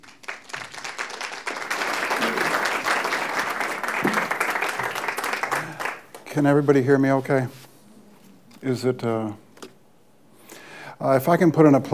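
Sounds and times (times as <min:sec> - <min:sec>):
audience applause welcoming a speaker to an evening talk: 0:00.0 - 0:06.2
speech: 0:06.4 - 0:07.6, 0:08.6 - 0:09.4, 0:11.0 - 0:11.9.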